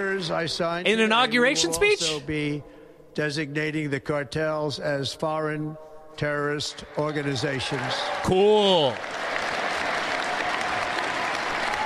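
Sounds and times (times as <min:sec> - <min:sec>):
speech: 0:00.0 - 0:09.2
crowd applause: 0:06.9 - 0:11.8.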